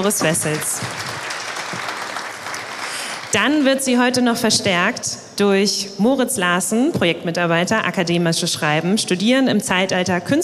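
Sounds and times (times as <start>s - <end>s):
speech: 0.0s - 1.1s, 3.3s - 10.4s
audience applause: 0.0s - 3.4s.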